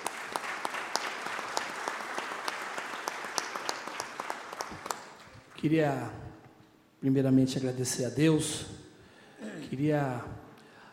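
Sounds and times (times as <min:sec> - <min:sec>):
steady audience applause from many people: 0:00.0 - 0:05.6
speech: 0:05.6 - 0:06.2, 0:07.0 - 0:08.8, 0:09.7 - 0:10.3.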